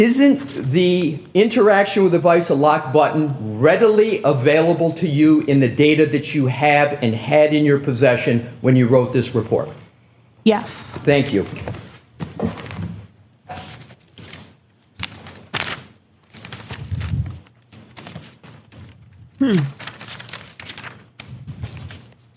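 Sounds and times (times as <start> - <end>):
speech: 0.0 - 9.8, 10.4 - 12.6, 19.4 - 19.9
papers shuffling: 10.9 - 22.3.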